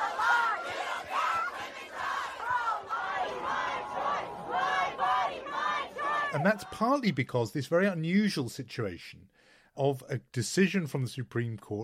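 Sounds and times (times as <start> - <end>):
protest crowd outside a courthouse chanting and shouting: 0.0 - 7.2
speech: 6.3 - 11.8.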